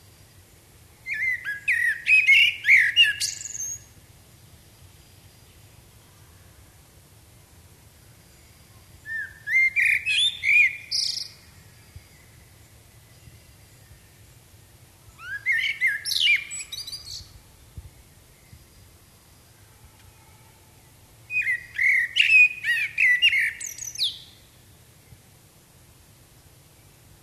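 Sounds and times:
Common blackbird song: 0:01.0 - 0:04.0, 0:08.3 - 0:14.3, 0:15.1 - 0:24.5.

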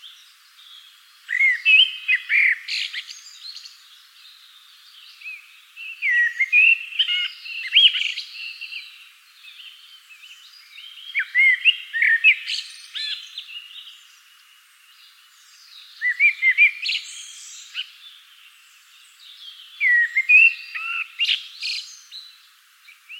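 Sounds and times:
common blackbird singing: 0:00.0 - 0:23.1.

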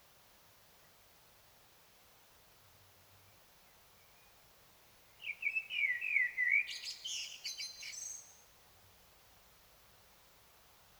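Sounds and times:
common blackbird singing: 0:05.2 - 0:08.4.

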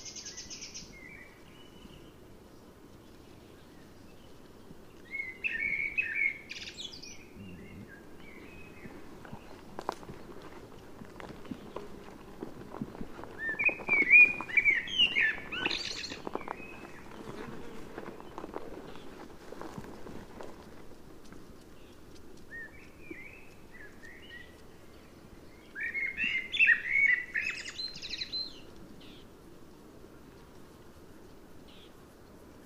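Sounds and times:
background noise: 0:00.0 - 0:32.6
common blackbird singing: 0:05.1 - 0:09.6, 0:13.4 - 0:17.1, 0:22.5 - 0:29.2.

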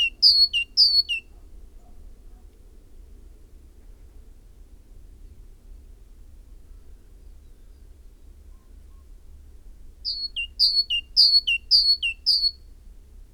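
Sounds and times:
great tit song: 0:00.0 - 0:01.2, 0:10.1 - 0:12.5.

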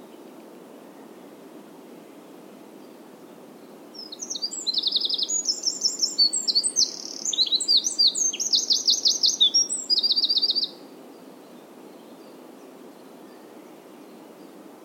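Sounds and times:
Eurasian wren singing: 0:04.0 - 0:10.8.

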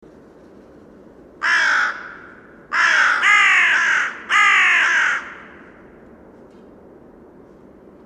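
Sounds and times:
carrion crow Corvus corone giving harsh caws: 0:01.4 - 0:06.0.

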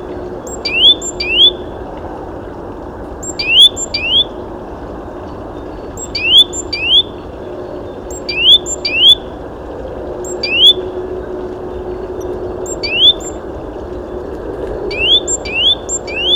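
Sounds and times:
Great tit whistled calls: 0:00.4 - 0:01.6, 0:03.2 - 0:04.4, 0:05.6 - 0:09.3, 0:10.2 - 0:10.9, 0:12.6 - 0:13.4, 0:14.9 - 0:16.3.

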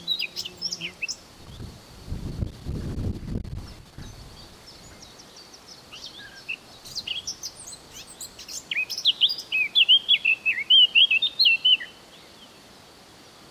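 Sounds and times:
Eurasian blackcap Sylvia atricapilla song: 0:00.0 - 0:01.7, 0:03.5 - 0:12.6.

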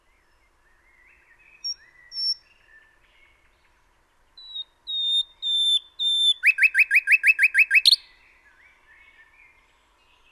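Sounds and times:
common nightingale singing: 0:00.0 - 0:10.3.

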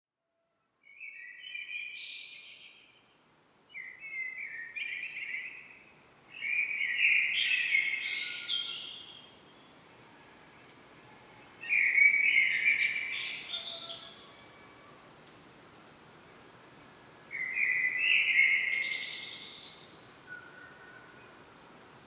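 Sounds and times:
common blackbird song: 0:00.8 - 0:09.8, 0:11.4 - 0:15.4, 0:17.3 - 0:21.4.

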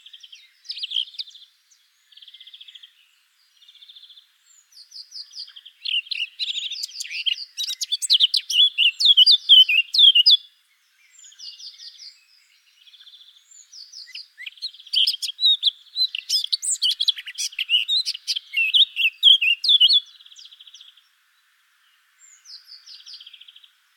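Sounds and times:
Eurasian blackcap song: 0:00.0 - 0:23.9.

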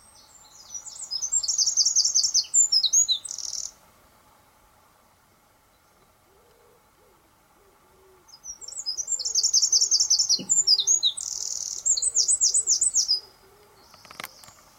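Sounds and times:
Eurasian wren singing with a rattling trill: 0:00.0 - 0:03.8, 0:08.3 - 0:14.7.

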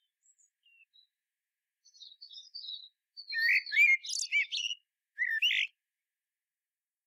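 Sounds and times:
common blackbird song: 0:00.0 - 0:01.2, 0:01.8 - 0:05.8.

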